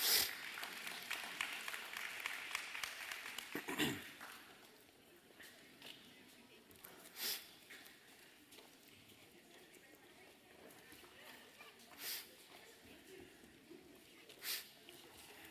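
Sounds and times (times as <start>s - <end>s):
crowd applauding: 0.0s - 4.5s
quiet murmur: 3.5s - 15.4s.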